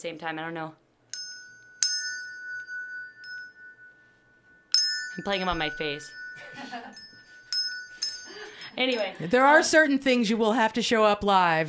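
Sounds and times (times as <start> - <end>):
speech: 0.0 - 0.8, 5.2 - 7.1, 8.8 - 11.6
small bell moved around a microphone: 1.1 - 9.3.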